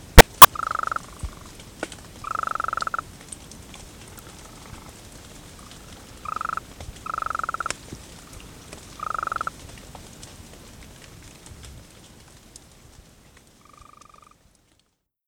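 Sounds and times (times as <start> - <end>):
golden toad calling: 0.2 - 1.5, 2.2 - 3.0, 6.2 - 7.7, 9.0 - 9.5, 13.6 - 14.4.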